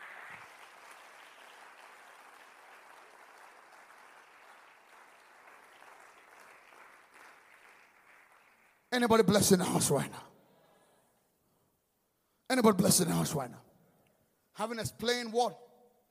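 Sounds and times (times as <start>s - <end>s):
audience clapping: 0.0s - 9.5s
speech: 9.0s - 10.3s, 12.6s - 13.7s, 14.6s - 15.6s.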